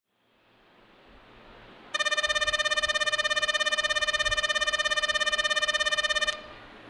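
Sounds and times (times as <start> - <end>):
station bell: 2.0 - 6.5.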